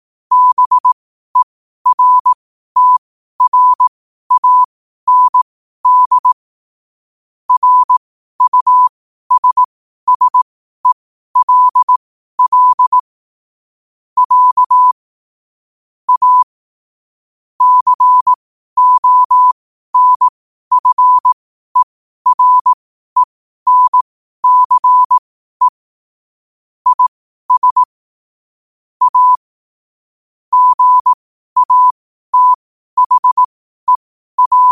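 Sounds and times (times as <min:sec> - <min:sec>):
morse code at 5 wpm: 0:00.3 - 0:06.4, 0:07.5 - 0:13.0, 0:14.2 - 0:15.0, 0:16.1 - 0:16.5, 0:17.6 - 0:25.8, 0:26.8 - 0:28.0, 0:29.0 - 0:29.5, 0:30.5 - 0:34.7.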